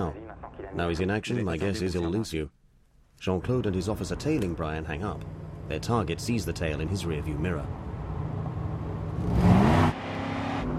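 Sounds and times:
speech: 0.1s - 2.6s, 3.2s - 7.9s, 9.2s - 9.5s
car accelerating hard through a red light in heavy traffic: 4.0s - 10.7s.

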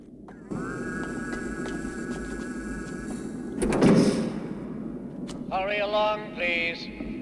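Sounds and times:
doors closing: 0.3s - 4.6s
speech: 5.6s - 7.0s.

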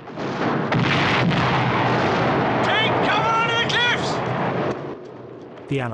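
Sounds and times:
German tank cannon fire shelling Allied troops on a beach: 0.0s - 5.6s
continuous roar of battle noise on a beach: 1.9s - 4.4s
speech: 5.7s - 5.9s.

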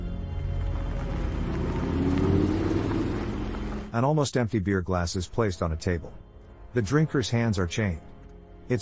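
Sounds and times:
car engine driving into a large hazy warehouse: 0.1s - 3.9s
speech: 3.9s - 8.1s, 8.7s - 8.8s.

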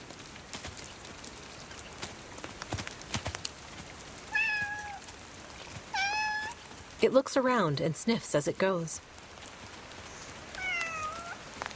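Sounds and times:
cat meowing: 4.3s - 5.0s, 5.9s - 6.6s, 10.6s - 11.5s
speech: 7.0s - 9.1s.

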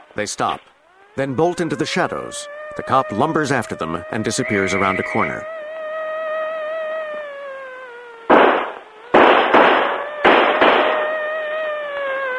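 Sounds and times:
speech: 0.2s - 5.6s
droning tone: 0.8s - 12.3s
gunshots in an alley: 8.3s - 11.2s.

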